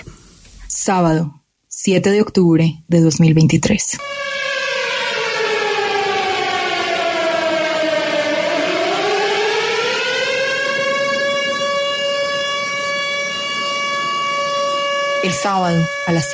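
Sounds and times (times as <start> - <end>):
speech: 0.8 - 4.2, 15.2 - 16.3
air raid alarm sirens in Israel: 4.0 - 16.3.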